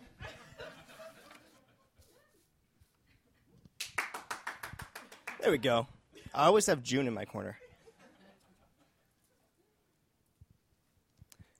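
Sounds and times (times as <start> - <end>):
laughter: 0.0 - 2.4, 7.5 - 9.4
few people clapping: 3.8 - 5.8
speech: 5.5 - 7.6.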